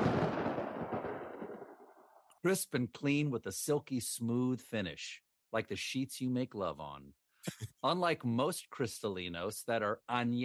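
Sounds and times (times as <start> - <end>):
lightning strike: 0.0 - 1.8
speech: 2.4 - 10.4.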